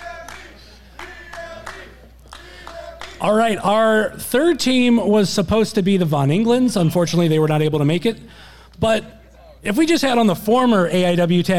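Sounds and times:
scattered audience clapping: 0:00.0 - 0:03.6
steady low hum: 0:00.0 - 0:11.5
speech: 0:03.2 - 0:11.5.

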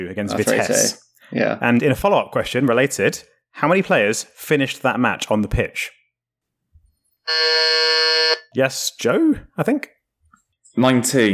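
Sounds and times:
speech: 0:00.0 - 0:06.0, 0:07.3 - 0:10.0, 0:10.8 - 0:11.3
quiz buzzer sound from a phone app: 0:07.3 - 0:08.5.

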